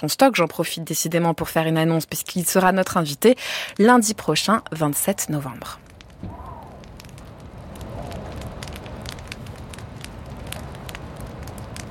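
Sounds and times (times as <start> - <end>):
speech: 0.0 - 6.3
log burning in a fireplace, flames crackling: 0.0 - 11.9.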